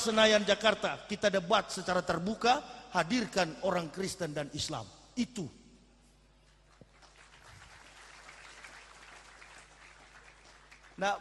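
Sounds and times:
speech: 0:00.0 - 0:05.6, 0:11.0 - 0:11.1
audience applauding: 0:06.7 - 0:11.1.

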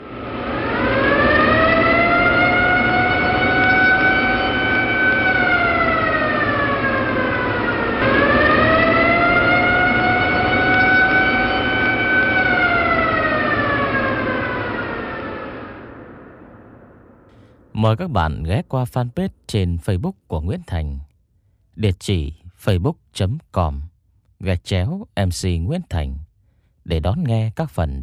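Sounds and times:
air raid warning siren wailing: 0:00.0 - 0:17.7
speech: 0:17.8 - 0:21.1, 0:21.8 - 0:26.3, 0:26.9 - 0:28.0.

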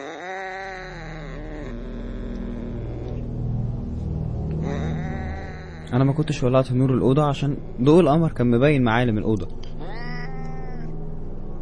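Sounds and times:
cat making a strange eerie yowl, horror-story sound effect: 0:00.0 - 0:03.4, 0:04.5 - 0:08.2, 0:09.8 - 0:11.0
low rumble: 0:00.7 - 0:11.6
speech: 0:05.9 - 0:09.6.

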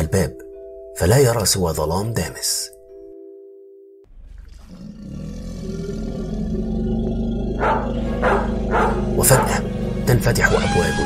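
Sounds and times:
speech: 0:00.0 - 0:00.4, 0:01.0 - 0:02.8, 0:09.2 - 0:11.0
beasts roaring: 0:04.1 - 0:11.0
dogs barking: 0:07.4 - 0:10.6.

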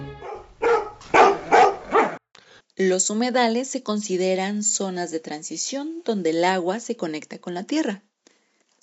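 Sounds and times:
dogs barking: 0:00.2 - 0:02.2
speech: 0:02.8 - 0:08.1.

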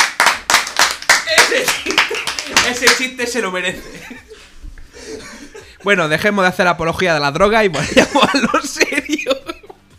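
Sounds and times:
hand clapping: 0:00.0 - 0:03.3
laughter: 0:01.3 - 0:02.8, 0:03.7 - 0:05.8, 0:07.7 - 0:09.9
speech: 0:02.6 - 0:04.3, 0:05.1 - 0:09.5.

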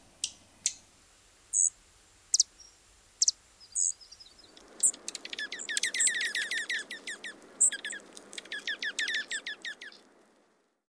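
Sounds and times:
low hiss: 0:00.0 - 0:10.8
bird song: 0:01.5 - 0:01.7, 0:02.3 - 0:10.1.

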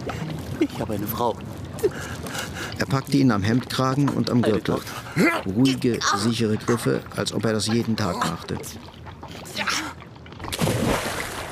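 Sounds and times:
speech: 0:00.6 - 0:09.0
body thrown into the sea splashing: 0:10.4 - 0:11.5.

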